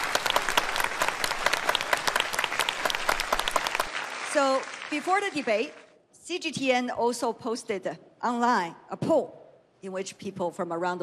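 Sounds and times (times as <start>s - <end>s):
round of applause: 0.0s - 5.9s
speech: 4.4s - 11.0s.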